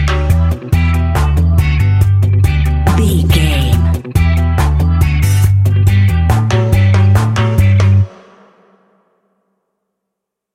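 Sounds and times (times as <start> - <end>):
reggae ska fusion music with skank bounce: 0.0 - 8.1.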